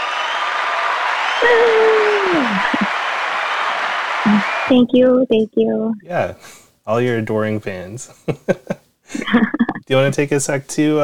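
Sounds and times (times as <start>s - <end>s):
applause sound effect: 0.0s - 5.0s
speech: 1.4s - 2.8s, 4.7s - 11.0s
laughter: 1.4s - 3.0s, 8.2s - 10.2s.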